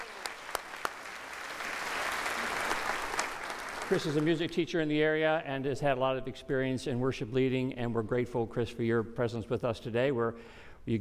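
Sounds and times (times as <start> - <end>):
round of applause: 0.0 - 4.5
speech: 3.9 - 11.0.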